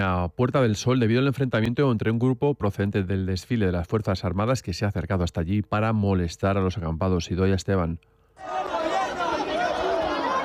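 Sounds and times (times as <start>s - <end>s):
speech: 0.0s - 8.8s
crowd chattering in a city square: 8.4s - 10.4s.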